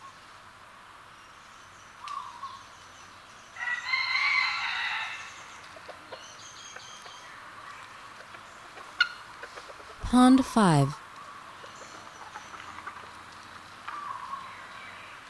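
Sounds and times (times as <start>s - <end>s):
red junglefowl crowing: 3.6s - 5.3s
speech: 10.1s - 11.0s.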